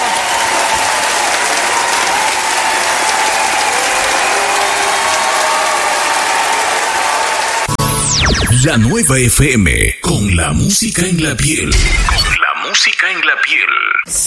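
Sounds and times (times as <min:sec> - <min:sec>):
audience applause from a large audience: 0:00.0 - 0:07.7
speech: 0:08.6 - 0:14.2.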